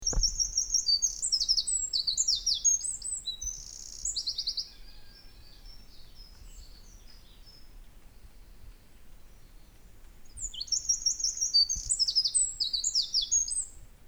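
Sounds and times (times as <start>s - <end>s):
brief low thump: 0.0s - 0.6s
Eurasian wren song: 0.0s - 7.8s, 8.4s - 13.8s.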